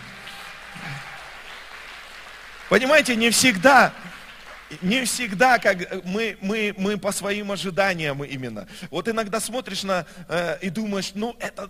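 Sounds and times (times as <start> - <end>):
audience applause: 0.0 - 5.7
speech: 2.7 - 4.1, 4.7 - 11.6.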